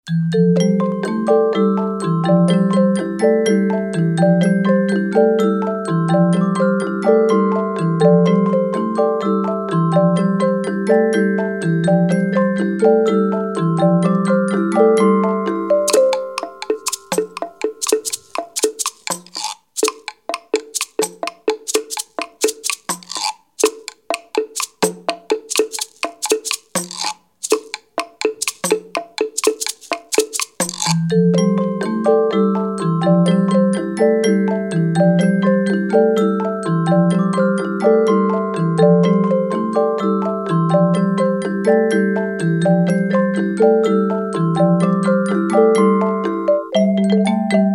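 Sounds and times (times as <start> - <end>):
instrumental music: 0.1 - 47.7.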